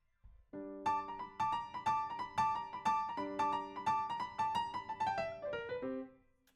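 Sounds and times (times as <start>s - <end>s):
rock and roll piano: 0.8s - 6.0s.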